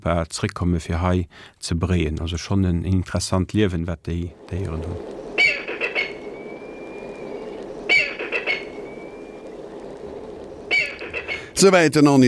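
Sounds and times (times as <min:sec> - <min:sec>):
speech: 0:00.0 - 0:05.2, 0:11.6 - 0:12.2
Black kite calling: 0:04.3 - 0:11.6
steady background noise: 0:04.3 - 0:11.6.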